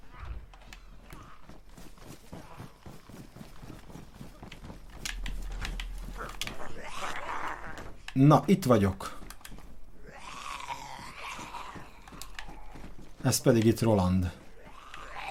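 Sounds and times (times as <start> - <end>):
footsteps: 0.0 - 15.2
door creaking open: 5.0 - 8.1
speech: 8.2 - 9.1, 13.3 - 14.4.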